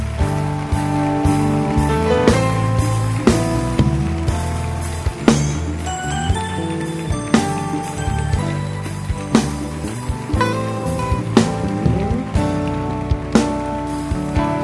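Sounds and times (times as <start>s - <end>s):
audience clapping hands: 0.0s - 14.6s.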